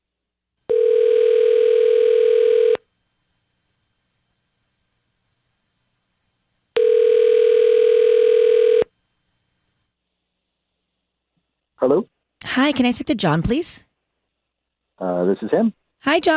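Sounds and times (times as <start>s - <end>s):
telephone line tone while a call is dialed: 0.7s - 2.8s, 6.8s - 8.9s
speech: 12.0s - 13.9s, 15.3s - 16.3s.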